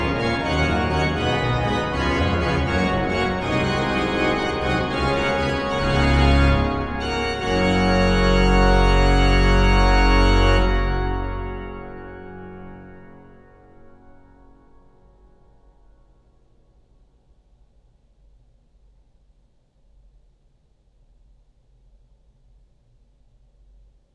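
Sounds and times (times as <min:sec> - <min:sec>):
fugue in G: 0:00.0 - 0:12.8.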